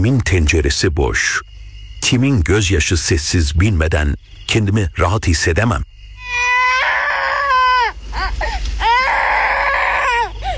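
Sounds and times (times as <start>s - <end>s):
speech: 0.0s - 5.9s
child crying at night: 6.2s - 10.5s.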